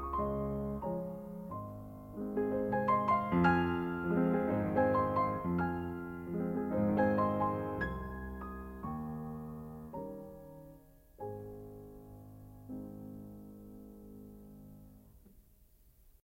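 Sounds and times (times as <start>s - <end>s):
waltz music: 0.0s - 10.8s.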